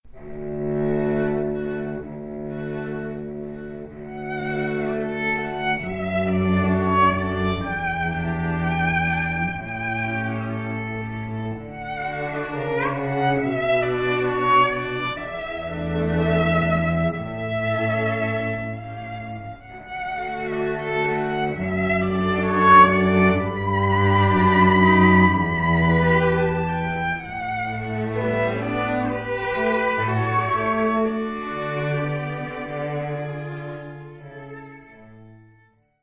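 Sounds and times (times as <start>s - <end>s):
strings: 0.0s - 35.9s.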